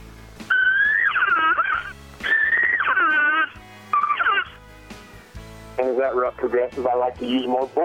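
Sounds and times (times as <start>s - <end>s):
growling elk cow calls imitating estrus cow blown through a game call: 0.5s - 4.6s
speech: 6.1s - 7.8s.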